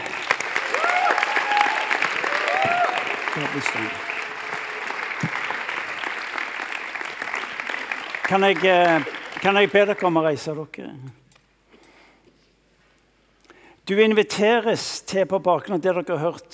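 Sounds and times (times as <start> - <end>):
audience applause: 0.0 - 10.0
speech: 3.4 - 4.1, 8.3 - 11.2, 13.9 - 16.5.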